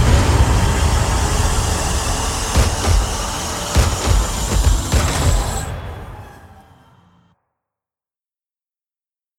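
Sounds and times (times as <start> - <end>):
trailer sound design effects: 0.0 - 7.4.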